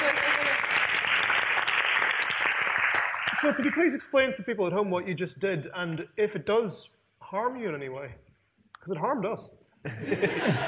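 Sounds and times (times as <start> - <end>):
audience applause: 0.0 - 4.0
speech: 3.4 - 10.6
laughter: 9.9 - 10.6.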